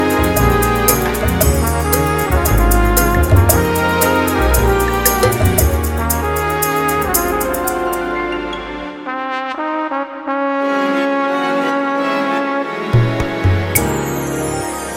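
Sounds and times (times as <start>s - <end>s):
orchestra playing: 0.0s - 14.9s.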